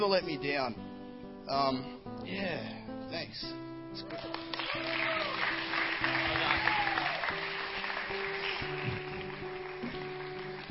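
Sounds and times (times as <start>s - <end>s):
speech: 0.0s - 0.9s, 1.5s - 6.1s
audience applause: 4.1s - 10.6s.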